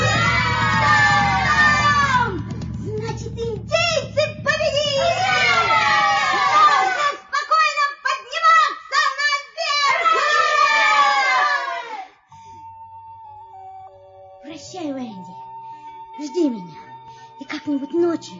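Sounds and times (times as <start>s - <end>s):
boys shouting in triumph: 0.0s - 2.4s, 4.6s - 12.1s
low rumble: 0.0s - 6.6s.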